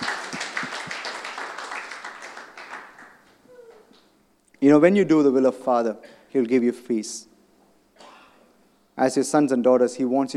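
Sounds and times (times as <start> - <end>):
audience clapping hands: 0.0 - 3.9
speech: 4.6 - 7.3, 9.0 - 10.3.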